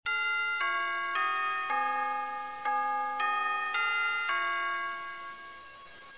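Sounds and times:
Big Ben clock tower bell chiming: 0.1s - 6.1s.

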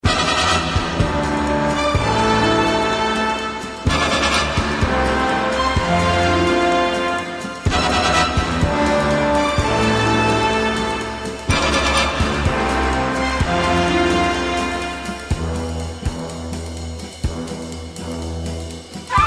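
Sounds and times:
1980s-style music: 0.0s - 19.2s.

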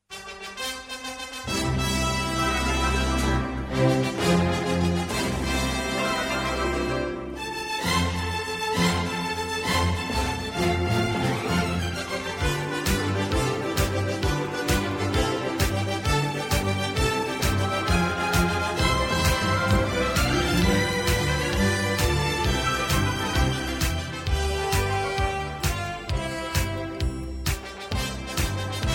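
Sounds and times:
mariachi music: 0.0s - 28.9s.

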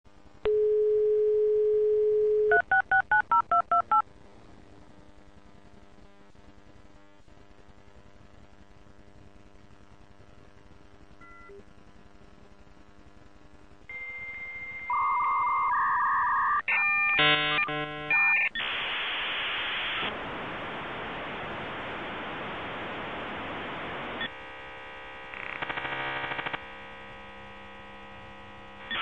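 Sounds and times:
modem: 0.4s - 4.2s, 4.8s - 29.0s.

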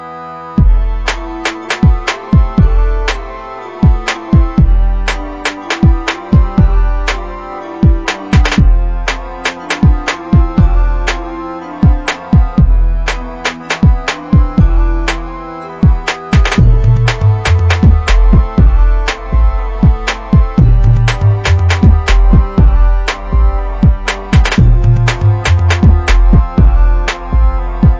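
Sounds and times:
beat: 0.6s - 27.9s.

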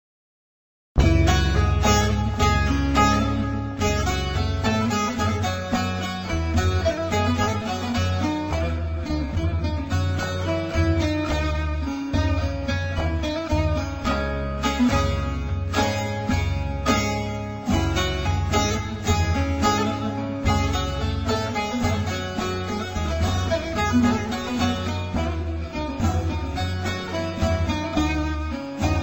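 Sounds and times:
saz: 1.0s - 29.0s.

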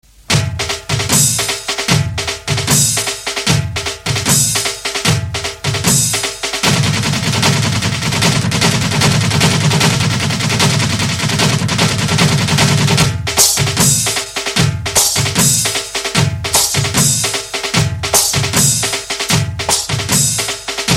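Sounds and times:
drum beats: 0.0s - 20.9s.

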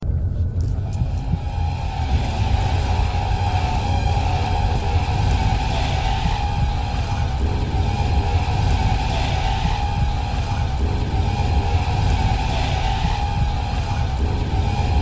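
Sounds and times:
chase music: 0.9s - 15.0s.

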